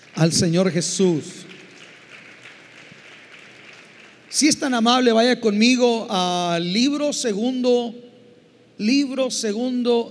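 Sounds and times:
crowd applauding: 0.0s - 5.0s
speech: 0.2s - 1.5s, 4.4s - 8.0s, 8.8s - 10.0s.

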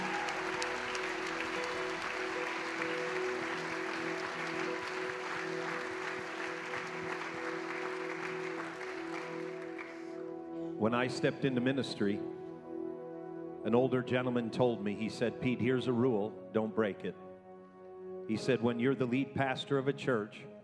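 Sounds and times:
audience applause: 0.0s - 10.3s
speech: 10.8s - 12.4s, 13.6s - 17.2s, 18.3s - 20.5s.

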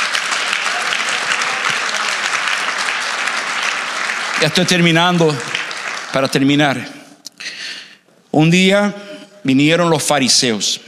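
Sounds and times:
loud audience applause: 0.0s - 6.9s
speech: 4.4s - 5.5s, 6.1s - 7.6s, 8.4s - 10.8s.

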